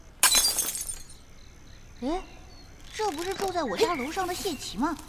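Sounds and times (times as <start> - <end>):
glass window shattering from slingshot shot: 0.2 - 1.2
speech: 2.0 - 2.3, 3.4 - 5.0.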